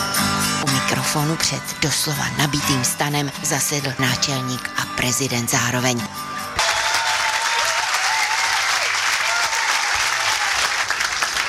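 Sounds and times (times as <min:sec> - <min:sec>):
speech: 0:01.0 - 0:06.3
audience applause in a tent: 0:06.6 - 0:11.4.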